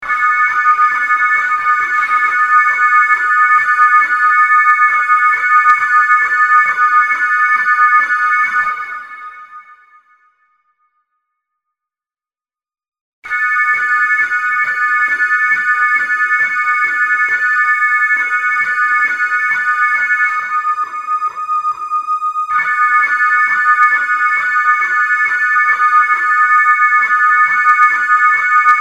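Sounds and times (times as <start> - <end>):
sine wave tone: 0.1 - 11.7, 13.3 - 28.7.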